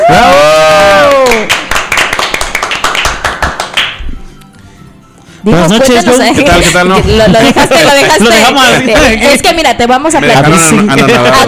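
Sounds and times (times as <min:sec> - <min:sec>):
high sliding cheer: 0:00.0 - 0:01.6
loud audience applause: 0:00.0 - 0:04.0
speech: 0:05.4 - 0:11.4
laughter: 0:06.4 - 0:09.2, 0:10.6 - 0:11.4.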